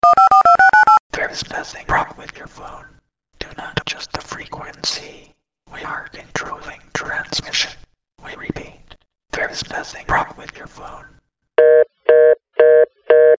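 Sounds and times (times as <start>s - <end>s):
Halloween phone ringtone: 0.0s - 1.0s, 11.6s - 13.3s.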